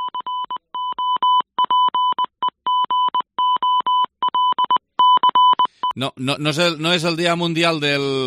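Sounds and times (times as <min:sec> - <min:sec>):
Morse code beeps: 0:00.0 - 0:06.0
speech: 0:06.0 - 0:08.2.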